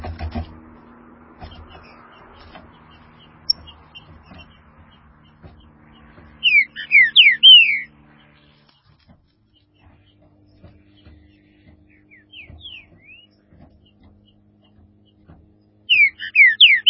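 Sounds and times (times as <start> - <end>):
green-winged saltator whistled song: 6.4 - 7.9, 15.9 - 16.8.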